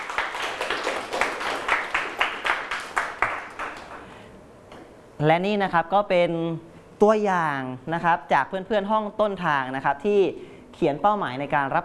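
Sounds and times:
classroom applause: 0.0s - 4.1s
speech: 5.2s - 11.8s.

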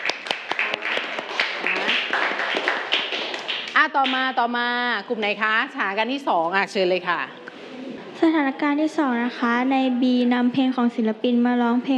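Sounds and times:
classmates clapping for a group: 0.0s - 4.6s
speech: 3.8s - 7.4s, 8.2s - 11.9s.

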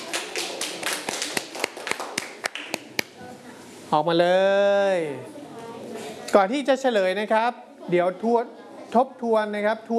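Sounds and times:
students clapping hands: 0.0s - 3.2s
speech: 3.9s - 5.4s, 6.3s - 9.9s.

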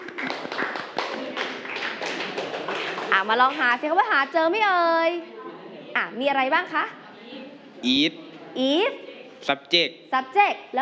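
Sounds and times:
classroom applause for a student group: 0.0s - 4.4s
speech: 3.2s - 5.4s, 6.0s - 7.0s, 7.8s - 10.7s.

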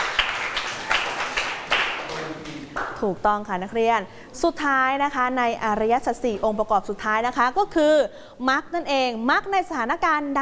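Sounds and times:
students clapping for themselves: 0.0s - 3.0s
speech: 3.0s - 10.3s.

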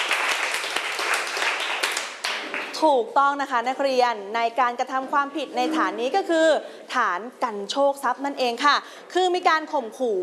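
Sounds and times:
students in a classroom clapping for a classmate: 0.0s - 2.8s
speech: 2.8s - 10.2s.

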